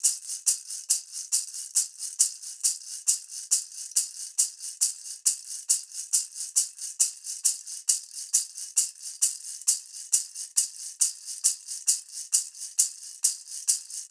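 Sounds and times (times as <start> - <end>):
maracas: 0.0 - 14.0.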